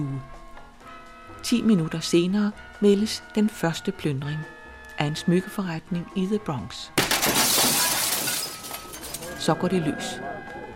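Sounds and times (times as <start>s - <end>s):
speech: 1.4s - 7.0s, 9.4s - 10.3s
shop window glass being smashed: 7.0s - 9.4s.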